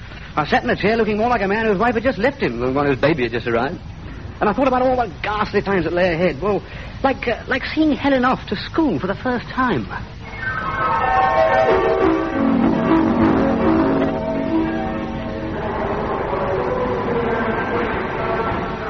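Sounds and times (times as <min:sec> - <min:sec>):
train idling at a station before departure: 0:00.0 - 0:18.8
speech: 0:00.4 - 0:10.2
droning tones sliding in pitch: 0:10.1 - 0:18.8.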